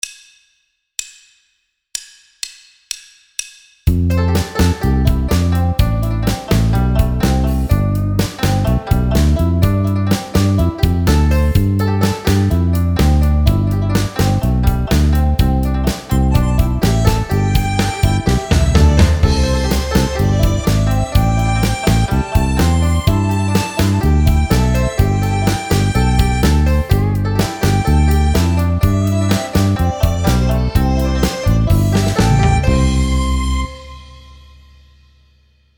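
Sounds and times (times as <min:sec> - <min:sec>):
Chinese New Year tune instrumental accompaniment: 0:03.9 - 0:35.1.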